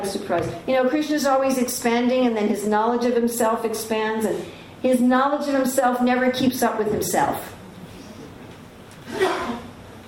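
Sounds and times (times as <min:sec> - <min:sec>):
speech: 0:00.0 - 0:07.6
sneeze: 0:09.0 - 0:09.7.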